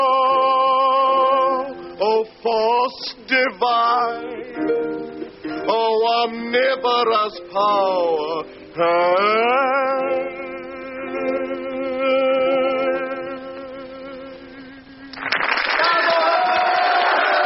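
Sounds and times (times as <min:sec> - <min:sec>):
person singing with sliding pitches: 0:00.0 - 0:15.1, 0:15.8 - 0:17.4
speech: 0:02.5 - 0:10.3
audience applause: 0:15.1 - 0:17.4.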